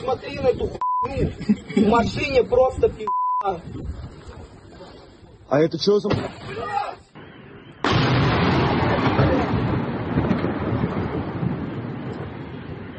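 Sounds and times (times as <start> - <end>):
speech: 0.0 - 4.2, 5.5 - 7.0
laughter: 1.2 - 2.2
downed drone crashing into a house with explosive boom: 7.8 - 12.9.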